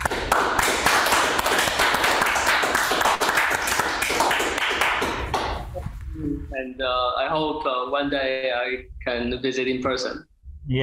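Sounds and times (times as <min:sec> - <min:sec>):
round of applause from a group: 0:00.0 - 0:05.6
speech: 0:06.6 - 0:10.8.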